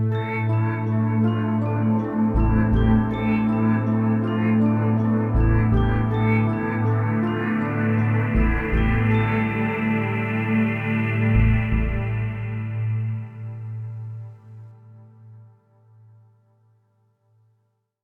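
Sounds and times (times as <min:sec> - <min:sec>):
day stinger: 0:00.0 - 0:14.1.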